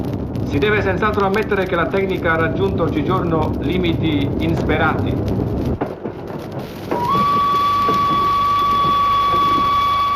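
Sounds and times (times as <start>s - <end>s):
speech: 0.0s - 5.8s
locomotive wheels on rails: 3.1s - 10.1s
locomotive whistle: 6.9s - 10.1s.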